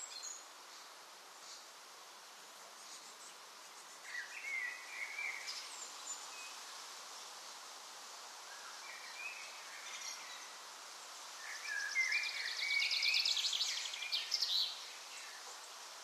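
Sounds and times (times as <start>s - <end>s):
birds on a balcony: 2.6s - 7.4s, 8.2s - 16.0s.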